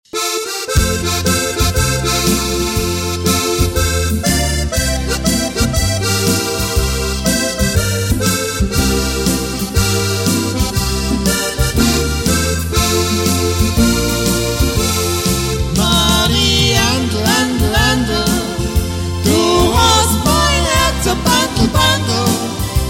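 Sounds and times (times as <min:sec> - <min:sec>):
duet: 0:00.2 - 0:22.8.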